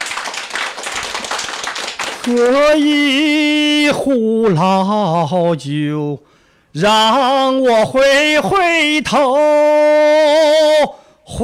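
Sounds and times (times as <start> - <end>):
audience applause: 0.0 - 2.6
speech: 2.2 - 11.4.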